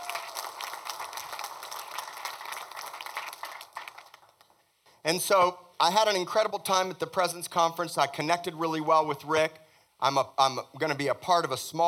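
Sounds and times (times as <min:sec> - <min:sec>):
audience hand clapping: 0:00.0 - 0:04.7
speech: 0:05.1 - 0:11.8.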